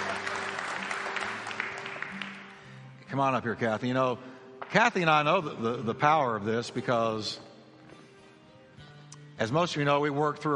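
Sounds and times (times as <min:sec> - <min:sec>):
crowd applauding: 0:00.0 - 0:02.8
speech: 0:03.1 - 0:07.5, 0:09.4 - 0:10.5.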